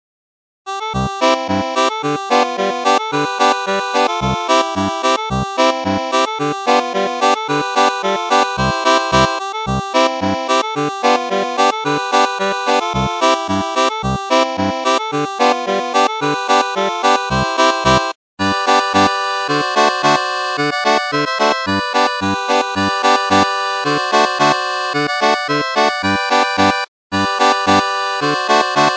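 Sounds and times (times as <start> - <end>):
Bavarian polka on a Styrian button accordion: 0.7 - 28.9.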